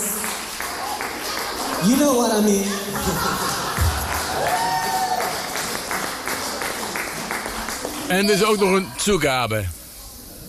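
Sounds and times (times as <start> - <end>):
crowd applauding: 0.0 - 9.2
laughter: 1.6 - 4.8
speech: 1.8 - 3.6, 8.1 - 9.8
people shouting and whooping: 2.8 - 5.6.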